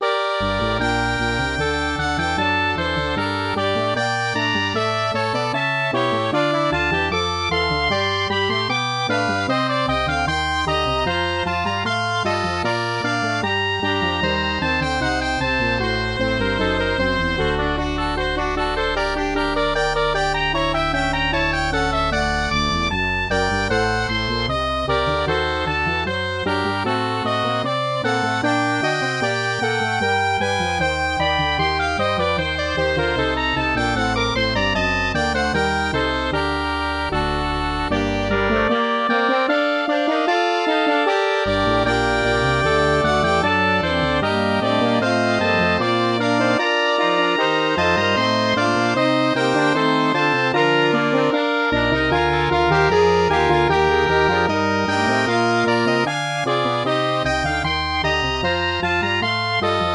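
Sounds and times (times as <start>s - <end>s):
MIDI music: 0.0s - 59.9s.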